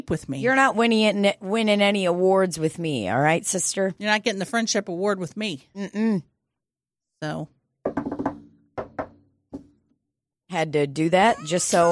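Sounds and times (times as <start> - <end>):
speech: 0.1 - 6.3, 7.2 - 7.6, 10.5 - 11.9
knocking on wood: 7.8 - 9.8.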